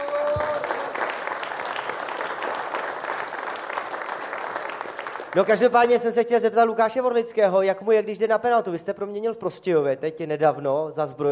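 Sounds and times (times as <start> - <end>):
audience applause: 0.0 - 5.9
speech: 5.3 - 11.3.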